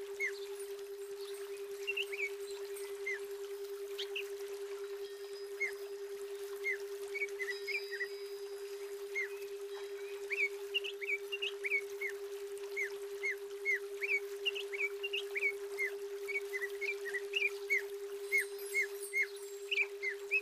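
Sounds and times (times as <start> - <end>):
female greater green leafbird singing: 0.0 - 3.3, 3.9 - 4.4, 5.0 - 20.3.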